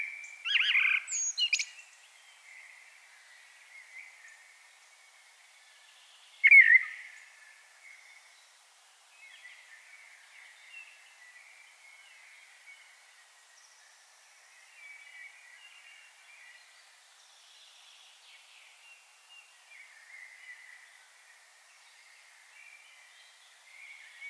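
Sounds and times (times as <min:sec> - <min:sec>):
common blackbird whistled song: 0:00.0 - 0:01.8, 0:06.4 - 0:07.2.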